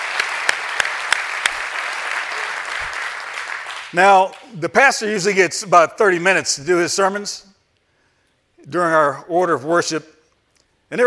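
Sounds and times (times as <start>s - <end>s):
audience applause: 0.0s - 4.5s
speech: 3.9s - 7.5s, 8.6s - 10.1s.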